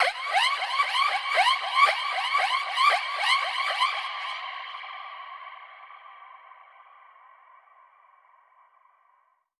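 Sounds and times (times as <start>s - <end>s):
processed alarm siren with reverb: 0.0s - 4.5s.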